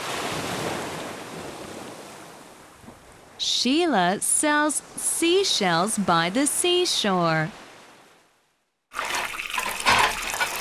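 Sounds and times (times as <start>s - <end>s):
speech: 3.4s - 7.6s
water running from a tap into a kitchen sink: 9.0s - 10.5s.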